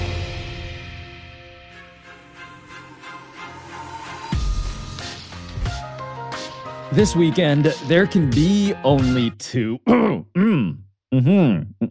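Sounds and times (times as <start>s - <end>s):
speech: 6.9s - 11.9s
throat clearing: 9.8s - 10.8s.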